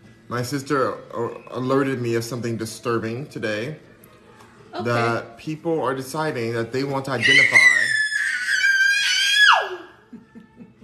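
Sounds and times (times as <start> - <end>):
speech: 0.3 - 3.9, 4.7 - 7.7
16-month-old toddler screaming: 7.2 - 10.0
laughter: 9.9 - 10.8.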